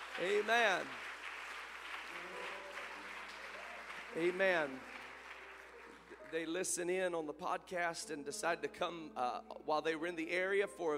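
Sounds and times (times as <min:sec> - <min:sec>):
audience applause for visiting guests: 0:00.0 - 0:06.5
speech: 0:00.2 - 0:01.0, 0:04.1 - 0:05.0, 0:06.3 - 0:10.9.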